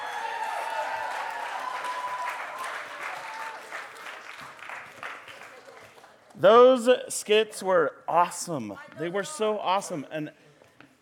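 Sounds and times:
round of applause: 0:00.0 - 0:06.4
speech: 0:06.4 - 0:10.4.

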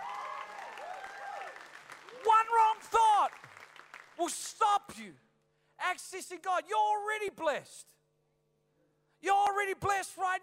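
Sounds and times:
audience clapping: 0:00.0 - 0:04.6
speech: 0:04.2 - 0:05.2, 0:05.8 - 0:07.9, 0:09.2 - 0:10.4.

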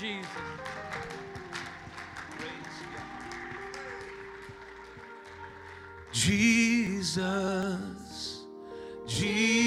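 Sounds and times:
speech: 0:00.0 - 0:00.7, 0:06.2 - 0:08.0, 0:09.1 - 0:09.5
audience clapping: 0:00.0 - 0:06.9.

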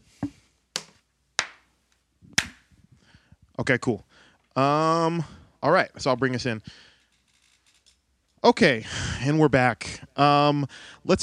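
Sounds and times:
single hand clap: 0:00.8 - 0:01.6, 0:02.4 - 0:02.7
speech: 0:03.6 - 0:06.9, 0:08.4 - 0:11.2.

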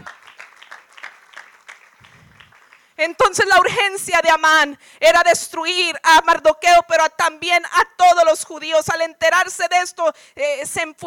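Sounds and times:
crowd applause: 0:00.0 - 0:03.0
speech: 0:03.0 - 0:11.0.

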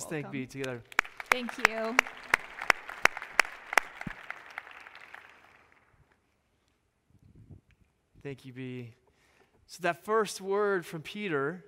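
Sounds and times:
speech: 0:00.0 - 0:02.3, 0:08.2 - 0:09.0, 0:09.7 - 0:11.6
audience applause: 0:00.0 - 0:06.1.

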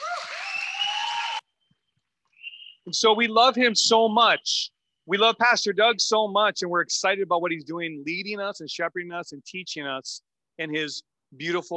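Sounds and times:
round of applause: 0:00.0 - 0:01.6
speech: 0:02.9 - 0:11.7.

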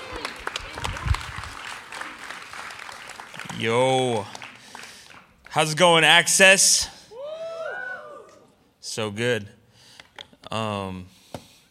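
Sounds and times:
audience applause welcoming a speaker: 0:00.0 - 0:05.5
speech: 0:03.6 - 0:04.4, 0:05.5 - 0:07.0, 0:09.0 - 0:09.6, 0:10.5 - 0:11.1.

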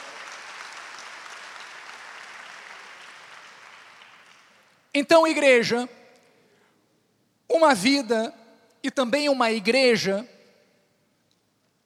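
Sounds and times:
audience applauding: 0:00.0 - 0:04.8
speech: 0:05.0 - 0:06.0, 0:07.6 - 0:10.4.

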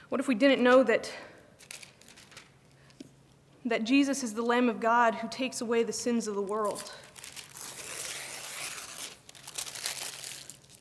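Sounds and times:
speech: 0:00.1 - 0:01.3, 0:03.6 - 0:07.0
page ripped out of a Bible, paper tearing and crinkling: 0:01.6 - 0:02.7, 0:06.4 - 0:10.7.

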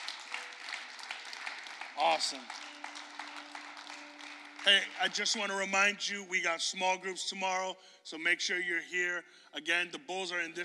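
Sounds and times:
hand clapping applause: 0:00.0 - 0:06.2
speech: 0:02.0 - 0:02.7, 0:04.6 - 0:10.6.

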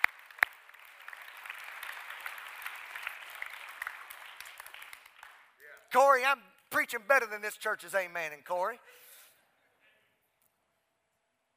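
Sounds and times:
people clapping hands: 0:00.0 - 0:07.0
speech: 0:05.9 - 0:09.0.

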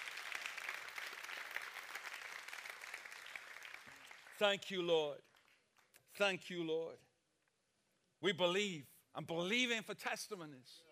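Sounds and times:
people clapping: 0:00.0 - 0:06.1
speech: 0:04.4 - 0:05.3, 0:06.2 - 0:07.1, 0:08.2 - 0:10.9.

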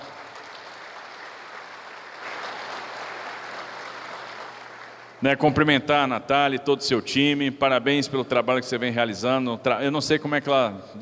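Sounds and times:
round of applause: 0:00.0 - 0:05.2
speech: 0:05.2 - 0:11.0.

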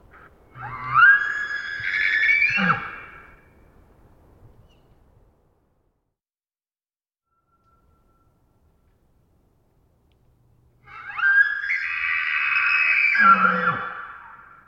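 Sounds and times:
wild elk screaming: 0:00.5 - 0:03.3, 0:10.8 - 0:14.6.

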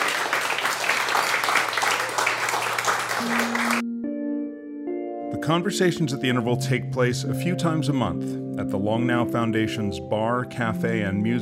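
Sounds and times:
audience applause: 0:00.0 - 0:03.8
sustained musical tones: 0:03.1 - 0:11.3
speech: 0:05.5 - 0:11.3.

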